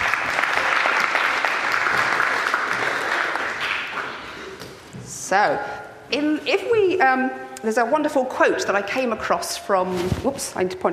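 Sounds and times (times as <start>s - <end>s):
audience clapping: 0.0s - 4.6s
speech: 5.3s - 10.9s.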